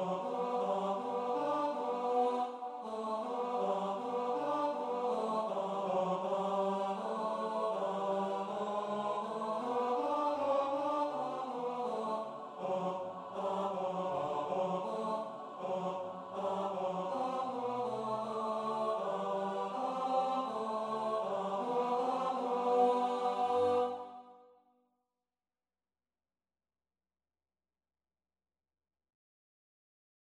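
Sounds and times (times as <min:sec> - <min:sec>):
tenor singing: 0:00.0 - 0:24.1.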